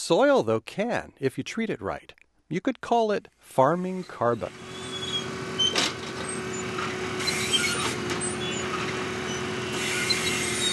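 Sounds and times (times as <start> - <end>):
speech: 0.1 - 4.7
no-till planter machinery drone planting soybeans on an Iowa farm: 4.0 - 10.7.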